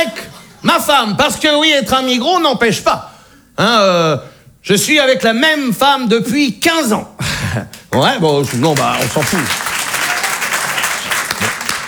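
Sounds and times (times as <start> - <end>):
speech: 0.6 - 9.6
audience applause: 7.9 - 11.8.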